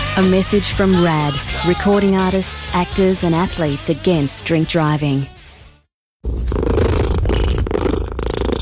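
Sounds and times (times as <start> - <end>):
speech: 0.1 - 5.3
cat purring contentedly: 6.3 - 8.5.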